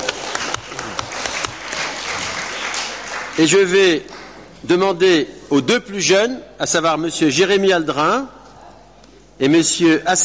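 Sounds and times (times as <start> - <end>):
audience applause: 0.0 - 4.4
speech: 3.4 - 8.4, 9.4 - 10.2.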